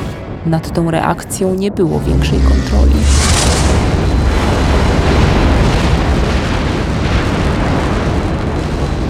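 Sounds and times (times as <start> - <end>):
speech: 0.4 - 3.4
massive explosion blast of energy: 1.9 - 9.0.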